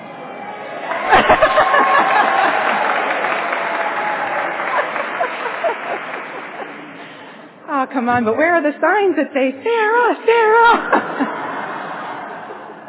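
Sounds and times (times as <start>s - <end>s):
large crowd clapping and cheering: 0.2s - 7.4s
laughter: 0.8s - 7.4s, 10.6s - 12.8s
speech: 7.9s - 11.4s.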